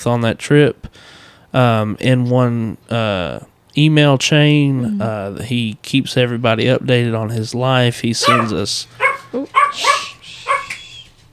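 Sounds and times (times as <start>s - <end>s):
speech: 0.0s - 10.0s
dog barking and yipping in a shop: 8.2s - 10.9s.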